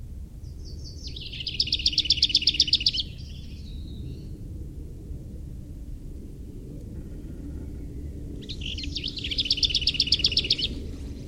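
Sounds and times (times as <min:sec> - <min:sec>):
low background rumble: 0:00.0 - 0:11.2
lesser whitethroat singing: 0:00.4 - 0:04.4, 0:07.3 - 0:11.2.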